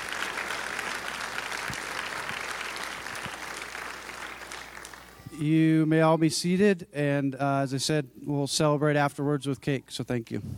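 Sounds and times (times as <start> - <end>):
applause: 0.0 - 5.3
speech: 5.4 - 10.5.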